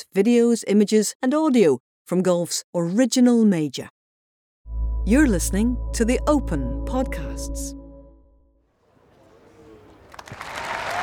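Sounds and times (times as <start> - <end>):
speech: 0.0 - 4.0, 5.0 - 7.8
golf crowd applause on the 18th: 9.8 - 11.0
golf crowd cheering: 10.0 - 11.0.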